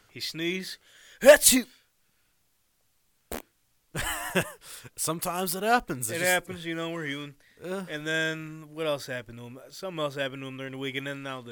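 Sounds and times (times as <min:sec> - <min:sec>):
speech: 0:00.2 - 0:01.8, 0:03.3 - 0:11.4
fart on a broadcast: 0:03.3 - 0:03.5.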